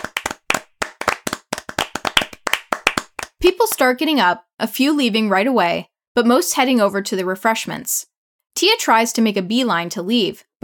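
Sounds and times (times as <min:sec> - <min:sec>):
group clapping: 0:00.0 - 0:03.4
speech: 0:03.5 - 0:10.6.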